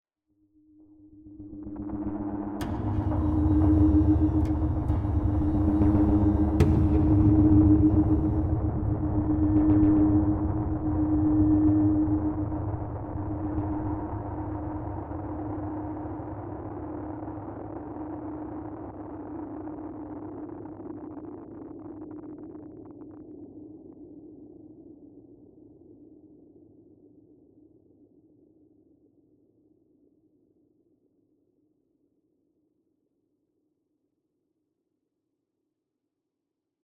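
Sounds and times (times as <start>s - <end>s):
suspense mood music: 0.8s - 17.8s.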